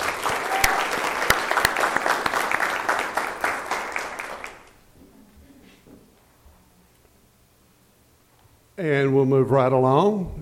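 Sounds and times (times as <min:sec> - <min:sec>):
audience applause at a meeting thanking guests: 0:00.0 - 0:04.8
speech: 0:08.8 - 0:10.4.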